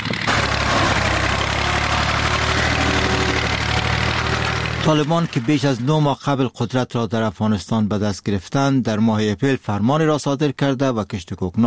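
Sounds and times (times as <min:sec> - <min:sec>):
tractor engine running while destroying poppy field: 0:00.0 - 0:06.4
speech: 0:04.8 - 0:11.6.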